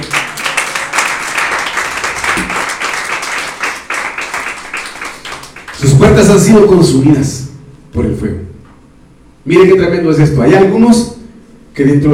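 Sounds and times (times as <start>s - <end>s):
audience clapping: 0.0s - 6.3s
speech: 6.0s - 7.4s, 9.5s - 11.2s, 11.8s - 12.1s.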